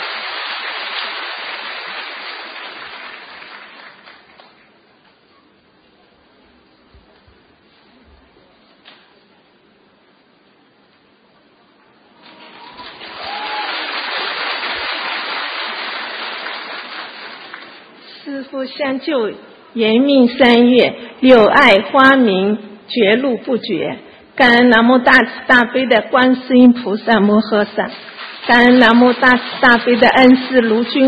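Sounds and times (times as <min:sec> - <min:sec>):
audience applause: 0:00.0 - 0:04.6, 0:12.3 - 0:17.9, 0:29.4 - 0:31.0
speech: 0:18.6 - 0:31.0.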